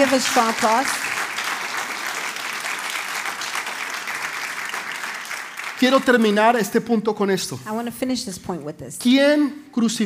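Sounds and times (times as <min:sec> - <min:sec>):
speech: 0:00.0 - 0:01.1, 0:05.8 - 0:10.0
audience applause: 0:00.0 - 0:06.8.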